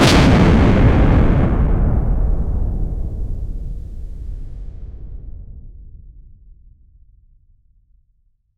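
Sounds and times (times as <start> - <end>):
nuclear bomb detonation: 0.0 - 5.6.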